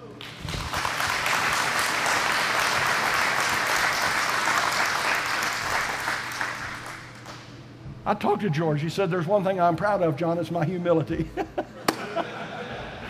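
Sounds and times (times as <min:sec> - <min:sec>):
audience applause: 0:00.0 - 0:07.4
speech: 0:08.1 - 0:11.6
laughter: 0:11.0 - 0:13.0.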